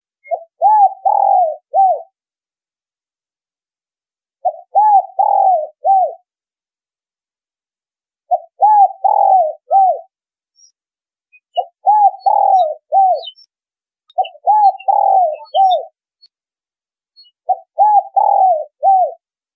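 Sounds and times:
spotted dove cooing: 0.2s - 2.1s, 4.4s - 6.2s, 8.3s - 10.1s, 11.6s - 13.4s, 14.1s - 16.0s, 17.4s - 19.2s.

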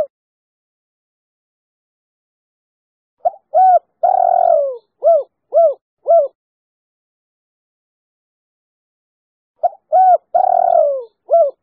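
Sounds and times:
spotted dove calls: 3.2s - 6.4s, 9.6s - 11.6s.

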